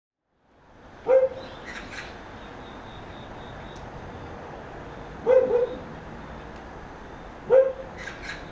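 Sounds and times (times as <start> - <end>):
dog barking in rural residential Seoul: 1.0 - 1.4, 5.2 - 5.9, 7.5 - 7.9.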